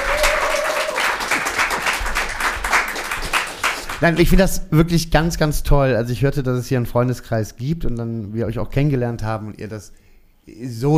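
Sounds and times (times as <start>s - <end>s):
audience applause: 0.0s - 4.2s
speech: 4.0s - 10.9s.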